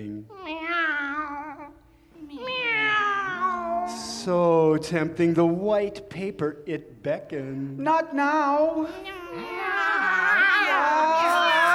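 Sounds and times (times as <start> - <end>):
speech: 0.0 - 0.5, 4.2 - 9.6
cat meowing: 0.3 - 4.3, 9.0 - 11.7.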